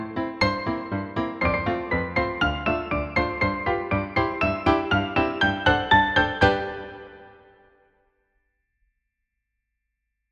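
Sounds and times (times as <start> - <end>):
piano: 0.0 - 7.9.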